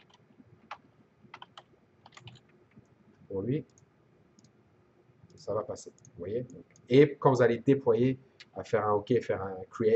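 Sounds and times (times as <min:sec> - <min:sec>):
typing on a computer keyboard: 0:00.0 - 0:02.5
speech: 0:03.3 - 0:03.8, 0:05.4 - 0:09.9.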